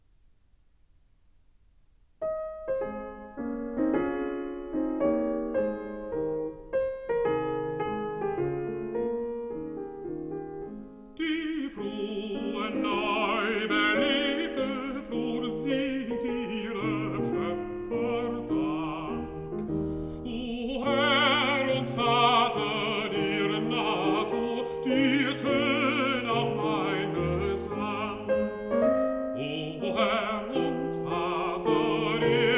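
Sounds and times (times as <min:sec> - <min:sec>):
piano: 0:00.0 - 0:32.5
person singing: 0:11.2 - 0:32.5.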